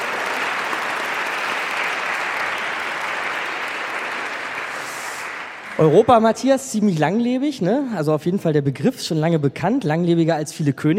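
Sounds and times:
audience applause: 0.0 - 6.6
speech: 5.8 - 10.9.

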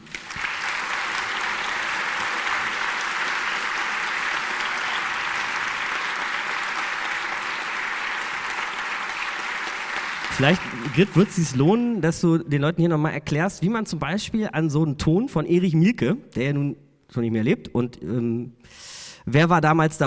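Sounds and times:
audience applause: 0.0 - 11.8
speech: 10.4 - 20.0.

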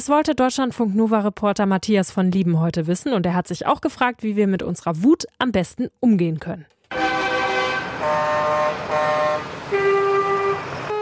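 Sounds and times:
speech: 0.0 - 7.1
engines rumbling: 6.9 - 10.9
tractor horns honking at farmers' protest: 6.9 - 10.9
traffic: 6.9 - 10.9.

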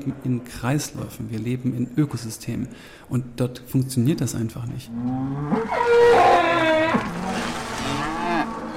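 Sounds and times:
speech: 0.0 - 7.5
cows mooing: 4.9 - 8.7.

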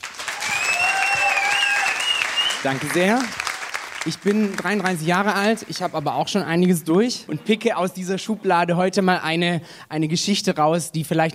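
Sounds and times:
audience applause: 0.0 - 6.2
speech: 2.6 - 3.4, 4.0 - 11.3.

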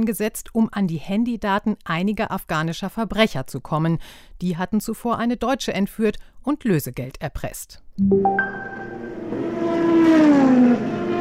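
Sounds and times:
speech: 0.0 - 9.2
racing car engine revving: 9.2 - 11.1.

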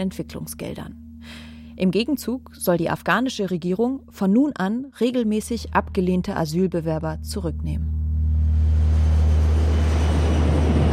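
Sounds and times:
speech: 0.0 - 8.0
deportation airplane engines roaring on takeoff from Frankfurt bound for Kabul: 7.9 - 10.9.

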